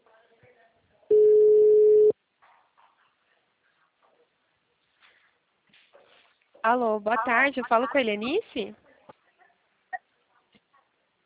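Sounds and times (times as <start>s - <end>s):
ringing tone on an outgoing phone call from a bank analyst: 1.1s - 2.1s
speech: 6.6s - 8.8s.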